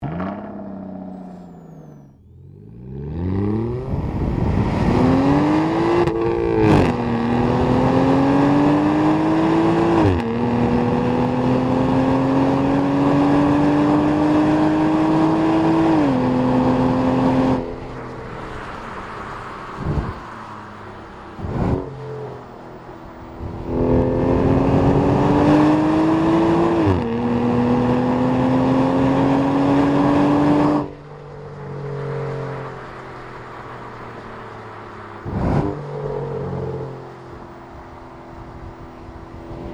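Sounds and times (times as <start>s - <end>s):
Aston Martin DB9 Volante engine: 0.0s - 39.7s.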